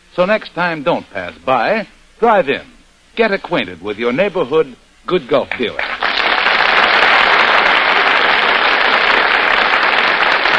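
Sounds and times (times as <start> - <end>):
speech: 0.2 - 5.9
audience applause: 5.5 - 10.5.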